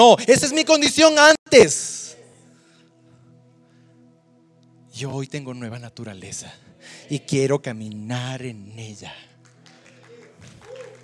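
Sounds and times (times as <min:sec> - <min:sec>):
speech: 0:00.0 - 0:02.1, 0:05.0 - 0:09.3
audience applause: 0:09.4 - 0:11.0.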